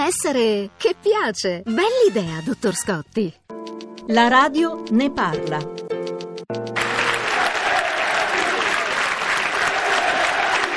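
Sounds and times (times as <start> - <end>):
speech: 0.1 - 5.8
stadium crowd applauding the team: 6.7 - 10.7.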